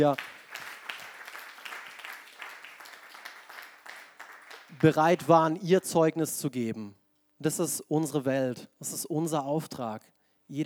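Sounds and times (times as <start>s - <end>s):
speech: 0.0s - 0.4s, 4.8s - 10.6s
crowd applauding: 0.0s - 5.4s.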